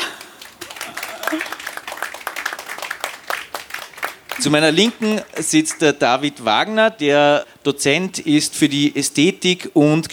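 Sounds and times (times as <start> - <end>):
audience applause: 0.0 - 5.9
speech: 1.3 - 1.6, 4.4 - 10.1.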